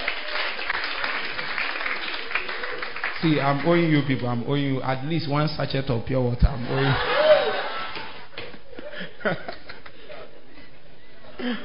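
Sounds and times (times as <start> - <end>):
audience clapping: 0.0 - 4.2
speech: 3.2 - 7.2, 9.2 - 9.6, 11.4 - 11.6
laughter: 6.6 - 11.6.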